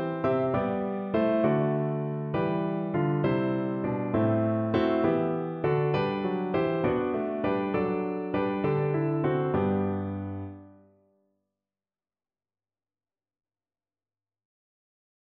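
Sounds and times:
piano piece: 0:00.0 - 0:11.0.

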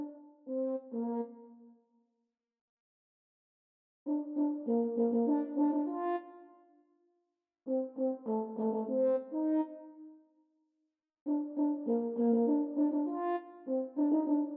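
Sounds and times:
French horn duet: 0:00.0 - 0:01.6, 0:04.1 - 0:06.4, 0:07.7 - 0:10.0, 0:11.3 - 0:14.5.

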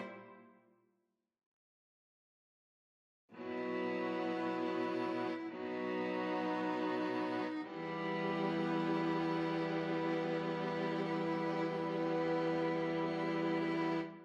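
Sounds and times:
string quartet playing a prelude: 0:00.0 - 0:00.3, 0:03.4 - 0:14.2.

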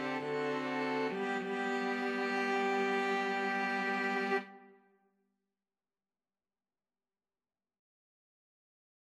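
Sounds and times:
string quartet playing a hymn: 0:00.0 - 0:04.6.

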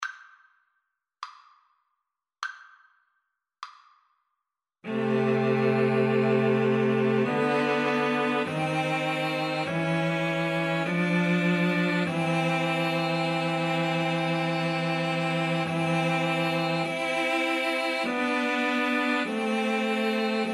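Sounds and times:
cello trio: 0:04.9 - 0:20.5.

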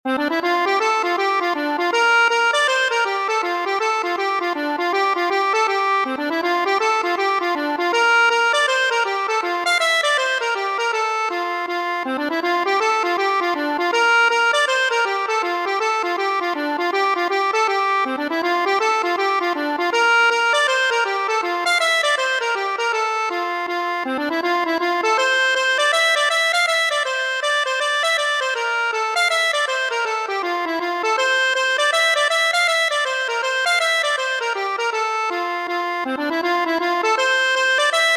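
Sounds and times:
accordion: 0:00.1 - 0:38.1.

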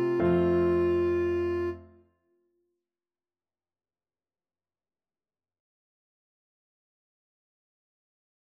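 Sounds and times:
clarinet: 0:00.0 - 0:02.0.

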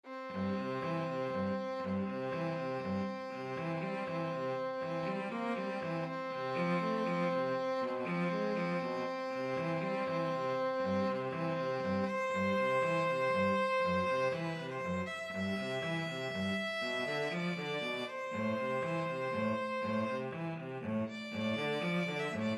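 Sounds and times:
violin and cello duet: 0:00.0 - 0:22.5.

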